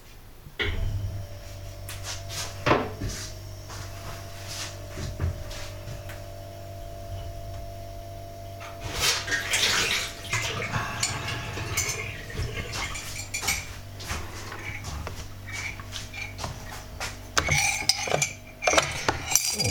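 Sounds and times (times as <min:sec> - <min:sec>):
low constant hum: 0:00.0 - 0:19.7
running water: 0:01.2 - 0:19.7
dishes and cutlery clinking: 0:09.2 - 0:19.7.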